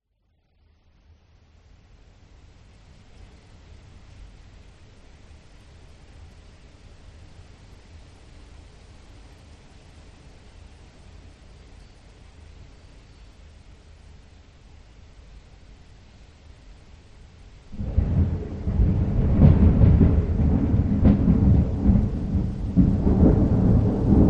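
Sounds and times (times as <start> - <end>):
light rain: 0.5 - 24.2
distant thunderstorm heard from inside home with closed windows: 17.7 - 24.2.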